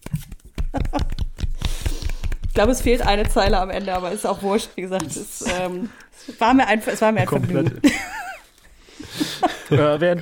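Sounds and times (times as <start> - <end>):
soft hand clapping into the microphone: 0.0 - 3.4
speech: 0.7 - 1.2, 2.6 - 8.2, 9.7 - 10.2
laughter: 7.0 - 10.2.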